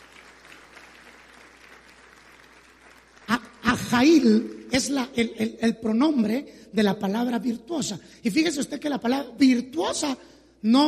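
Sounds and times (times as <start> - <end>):
audience applauding: 0.0 - 4.9
speech: 3.9 - 10.8.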